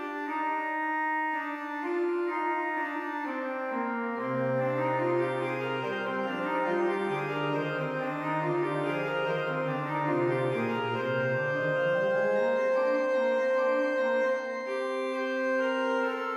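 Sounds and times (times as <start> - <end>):
organ prelude: 0.2 - 16.3.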